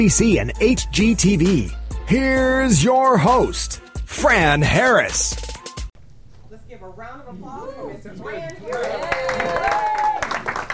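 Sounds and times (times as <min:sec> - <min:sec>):
speech: 0:00.0 - 0:05.4
audience applause: 0:08.7 - 0:10.7.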